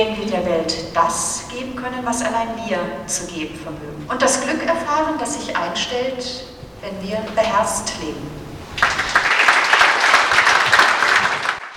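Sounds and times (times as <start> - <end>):
speech: 0.0 - 8.4
audience applause in a theatre foyer: 8.8 - 11.7.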